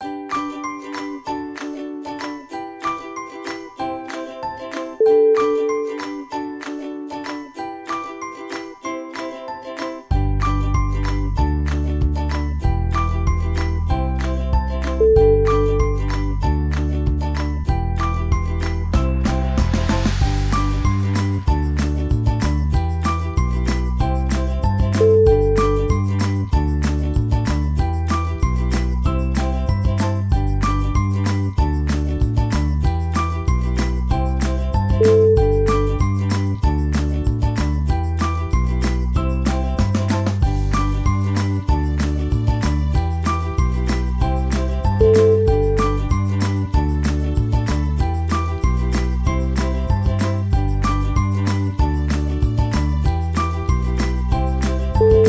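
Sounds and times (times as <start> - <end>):
ukulele theme: 0.0 - 55.2.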